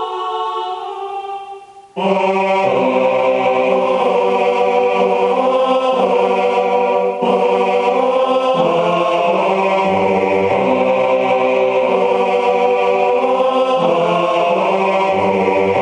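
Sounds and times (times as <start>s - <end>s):
tenor and bass voices singing a sacred choral work: 0.0s - 15.8s.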